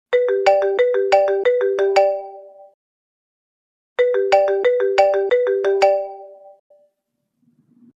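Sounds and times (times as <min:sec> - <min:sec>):
marimba: 0:00.1 - 0:02.5, 0:04.0 - 0:06.6.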